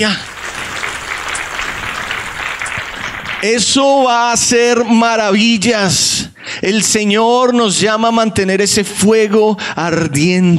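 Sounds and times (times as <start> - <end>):
speech: 0.0 - 0.3, 3.4 - 10.5
audience applause: 0.0 - 4.4.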